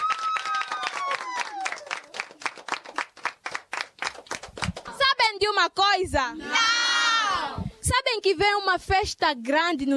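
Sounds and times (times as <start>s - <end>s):
children clapping: 0.0s - 5.0s
speech: 5.4s - 6.8s, 7.9s - 9.9s.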